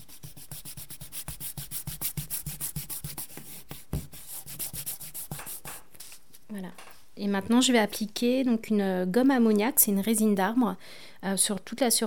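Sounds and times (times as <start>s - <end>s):
eraser rubbing out pencil lines on paper: 0.0s - 6.2s
speech: 6.5s - 12.0s.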